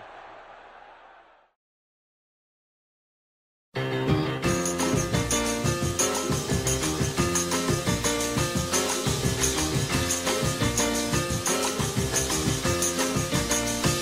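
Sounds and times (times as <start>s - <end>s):
stadium crowd roaring: 0.0s - 1.5s
upbeat music with steady beat: 4.5s - 13.9s.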